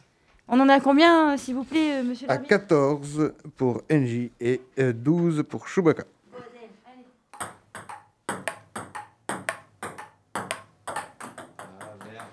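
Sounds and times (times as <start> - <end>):
speech: 0.5 - 6.2
table tennis ball bouncing during a rally: 7.3 - 12.3.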